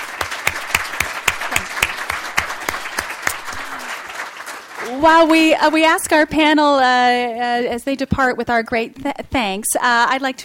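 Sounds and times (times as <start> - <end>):
audience applause: 0.0 - 5.5
speech: 5.0 - 10.4.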